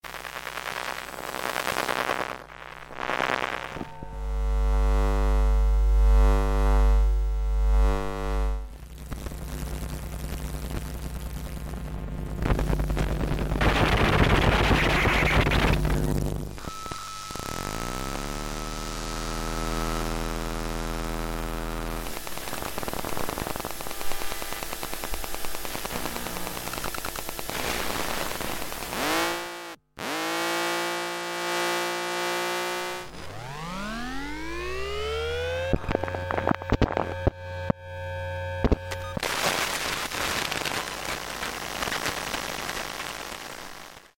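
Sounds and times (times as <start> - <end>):
electromagnetic field and emissions noise: 0.0 - 44.1.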